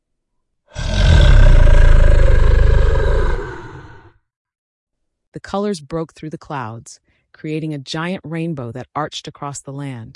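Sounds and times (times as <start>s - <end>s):
creature roaring mightily: 0.7s - 4.2s
speech: 5.4s - 10.1s.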